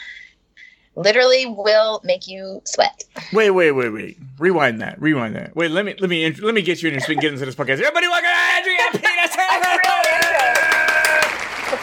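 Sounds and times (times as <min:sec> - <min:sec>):
speech: 0:01.0 - 0:10.4
laughter: 0:06.7 - 0:11.8
crowd applause: 0:08.1 - 0:11.8.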